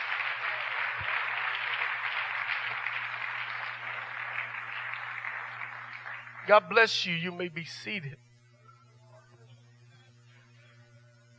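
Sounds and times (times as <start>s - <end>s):
audience applause: 0.0s - 7.1s
speech: 6.5s - 8.3s.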